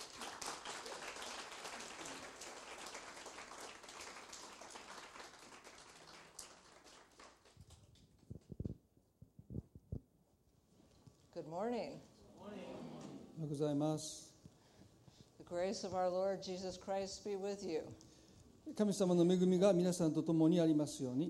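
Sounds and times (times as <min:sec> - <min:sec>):
audience applause: 0:00.0 - 0:07.8
speech: 0:11.4 - 0:14.2, 0:15.5 - 0:18.0, 0:18.7 - 0:21.2.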